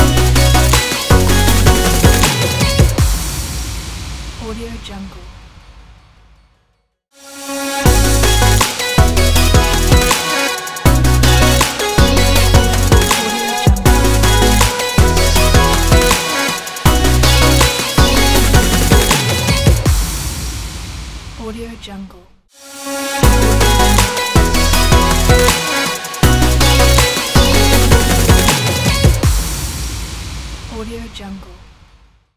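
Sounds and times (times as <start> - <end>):
future bass intro logo music: 0.0 - 3.2, 7.5 - 20.0, 22.9 - 29.4.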